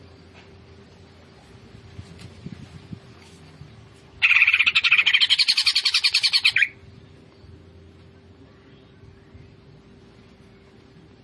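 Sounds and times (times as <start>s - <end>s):
low background hum: 0.0s - 11.2s
greater green leafbird chattering song: 4.2s - 6.8s.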